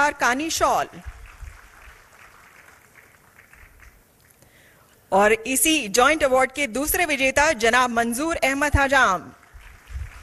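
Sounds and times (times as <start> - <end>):
speech: 0.0 - 1.1, 5.1 - 9.4
applause at a handicraft awards ceremony: 0.9 - 4.4, 9.0 - 10.2.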